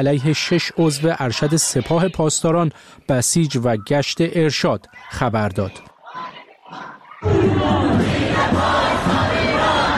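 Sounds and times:
protest march crowd shouting slogans: 0:00.0 - 0:02.4, 0:04.9 - 0:09.9
speech: 0:00.0 - 0:05.9, 0:06.7 - 0:09.4.

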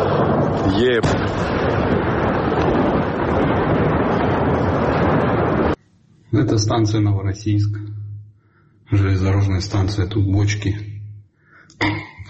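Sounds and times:
drone strike explosion at Novorossiysk railway station: 0:00.0 - 0:05.8
speech: 0:06.4 - 0:07.9, 0:08.9 - 0:10.9, 0:11.8 - 0:12.1.

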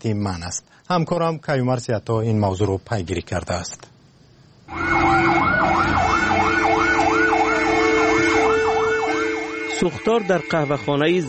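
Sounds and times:
speech: 0:00.0 - 0:03.9, 0:09.8 - 0:11.2
fire engine siren wailing: 0:04.7 - 0:11.2.

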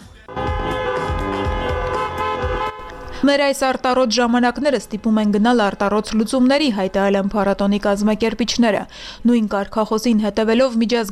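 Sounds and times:
car horns honking as applause at a drive-in film festival screening: 0:00.0 - 0:05.0
speech: 0:03.2 - 0:11.1.

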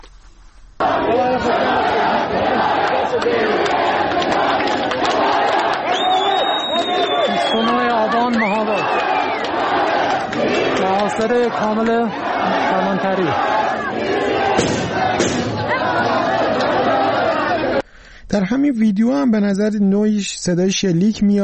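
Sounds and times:
large crowd shouting: 0:00.8 - 0:17.8
speech: 0:11.1 - 0:15.7, 0:18.3 - 0:21.4.

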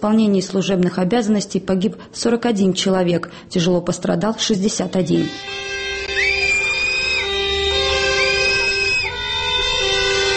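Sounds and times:
speech: 0:00.0 - 0:06.3
protesters' shrill whistle blasts: 0:06.0 - 0:09.3
constant roar of protest crowd noise: 0:06.1 - 0:09.2.

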